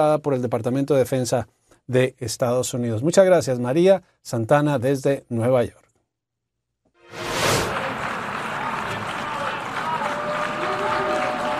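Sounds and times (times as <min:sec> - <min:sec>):
speech: 0:00.0 - 0:05.8
applause in assembly hall: 0:07.6 - 0:11.5.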